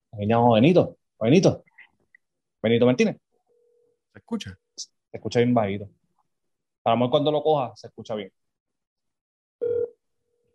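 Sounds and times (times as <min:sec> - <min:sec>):
speech: 0:00.2 - 0:01.7, 0:02.6 - 0:03.2, 0:04.2 - 0:06.0, 0:06.8 - 0:08.4
phone call electronic ringing tone: 0:09.6 - 0:10.5.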